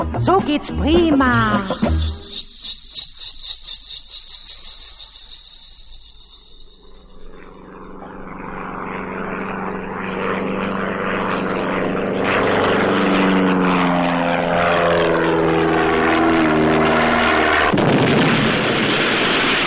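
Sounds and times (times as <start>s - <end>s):
speech: 0.0s - 2.4s
propeller plane flying overhead: 0.0s - 19.6s
high insect-like buzz: 1.3s - 8.4s.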